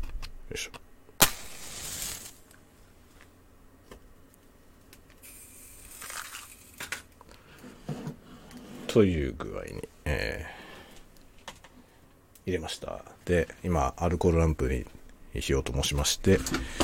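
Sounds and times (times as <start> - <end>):
speech: 0.5 - 0.8, 9.0 - 10.5, 12.5 - 16.8
match striking: 1.2 - 2.5.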